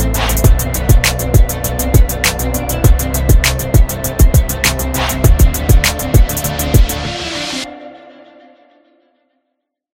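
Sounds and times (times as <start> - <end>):
epic trap beat: 0.0 - 7.6.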